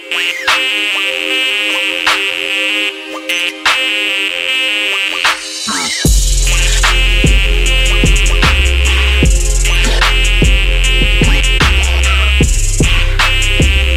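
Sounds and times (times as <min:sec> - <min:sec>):
trap beat: 0:00.0 - 0:13.9.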